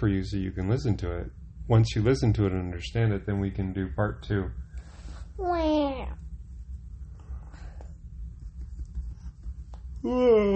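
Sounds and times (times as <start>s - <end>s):
speech: 0.0s - 4.6s, 5.4s - 6.2s, 10.0s - 10.5s
low rumble: 0.0s - 10.5s
person yawning: 10.0s - 10.5s.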